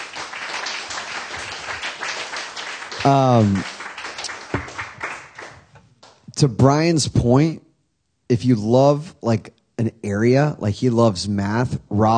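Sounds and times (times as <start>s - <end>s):
crowd clapping: 0.0s - 6.2s
person cheering: 3.0s - 3.7s
speech: 3.0s - 3.7s, 6.4s - 7.6s, 8.3s - 12.1s.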